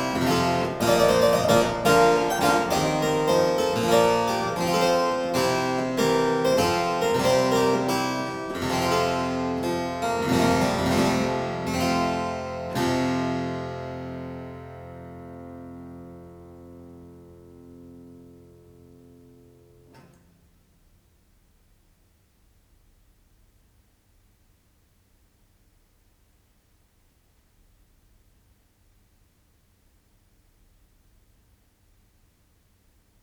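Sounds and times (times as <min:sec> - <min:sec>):
galliard played on harpsichord: 0:00.0 - 0:17.4.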